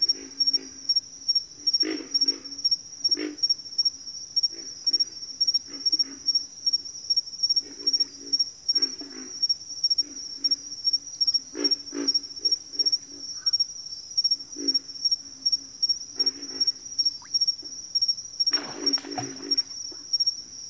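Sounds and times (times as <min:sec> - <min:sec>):
quiet calm evening chirping of crickets: 0:00.0 - 0:20.6
ducks quacking: 0:18.6 - 0:20.0.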